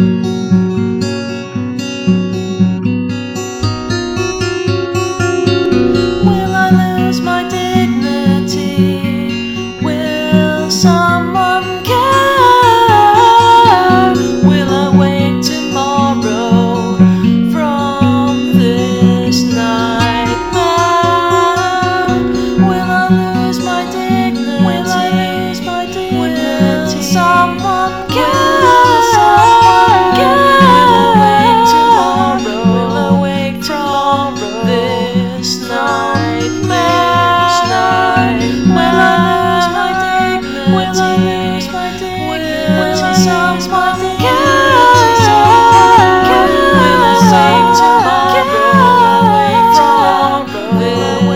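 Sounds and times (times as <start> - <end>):
vocals: 0.2 - 51.3.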